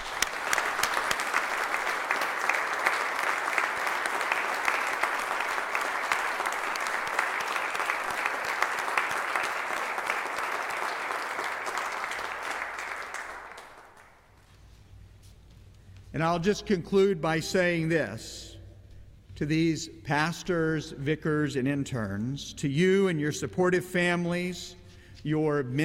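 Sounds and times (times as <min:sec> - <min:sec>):
audience applause: 0:00.0 - 0:14.2
speech: 0:16.2 - 0:18.5, 0:19.4 - 0:25.8.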